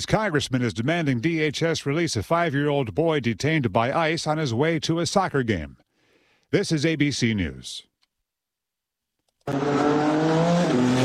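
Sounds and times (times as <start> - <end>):
speech: 0.0 - 5.8, 6.5 - 7.9, 9.5 - 11.0
race car engines roaring: 9.5 - 11.0.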